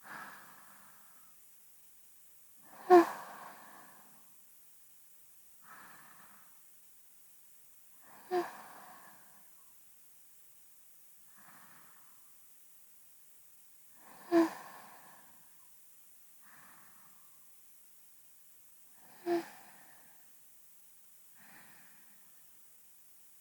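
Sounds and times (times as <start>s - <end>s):
sleeping breath: 0.0s - 1.4s, 2.6s - 4.3s, 5.6s - 6.6s, 8.0s - 9.6s, 11.3s - 12.4s, 13.9s - 15.6s, 16.4s - 17.5s, 18.9s - 20.4s, 21.3s - 22.5s.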